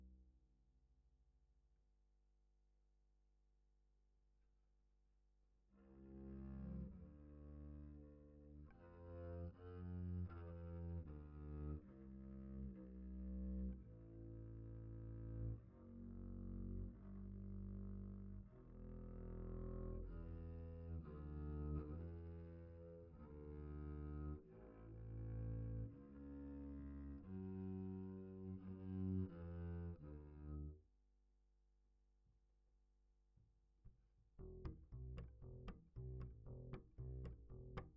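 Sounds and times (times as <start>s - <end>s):
bass guitar recorded by direct input: 6.0s - 30.8s, 34.3s - 37.9s.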